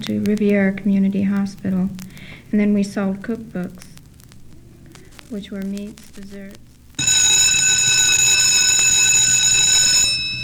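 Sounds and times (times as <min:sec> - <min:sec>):
speech: 0:00.0 - 0:03.9, 0:05.3 - 0:06.6
school bell ringing: 0:07.0 - 0:10.4.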